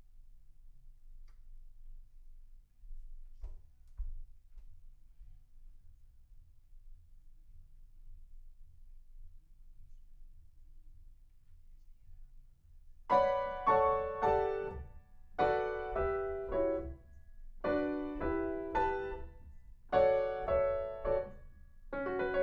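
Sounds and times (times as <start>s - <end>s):
piano in a room: 13.1s - 22.4s.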